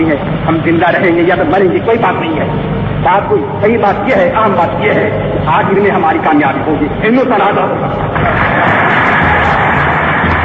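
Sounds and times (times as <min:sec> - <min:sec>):
speech: 0:00.1 - 0:09.1
thunderous applause from a large crowd: 0:08.0 - 0:10.4.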